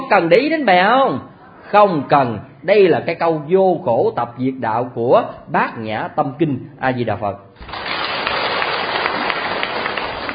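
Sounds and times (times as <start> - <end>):
speech: 0.1 - 7.7
audience clapping during a Buddhist sermon on the Heart Sutra: 7.6 - 10.3.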